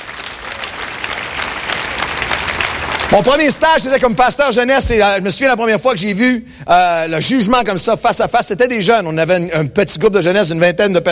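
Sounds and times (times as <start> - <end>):
audience applause: 0.0 - 4.0
speech: 3.1 - 11.1.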